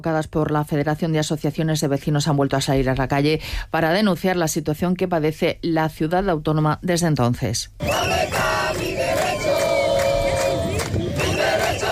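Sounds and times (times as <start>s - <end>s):
speech: 0.0s - 8.4s
protesters shouting and chanting during a street march: 7.8s - 11.9s.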